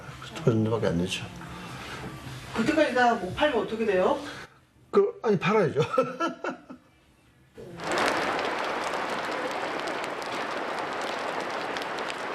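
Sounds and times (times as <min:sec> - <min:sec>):
speech: 0:00.4 - 0:01.5, 0:02.6 - 0:06.6
rain falling on a greenhouse roof: 0:07.6 - 0:12.3.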